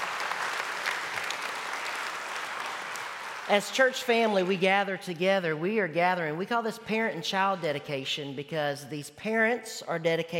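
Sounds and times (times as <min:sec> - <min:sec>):
audience applause: 0:00.0 - 0:04.6
speech: 0:03.5 - 0:10.3.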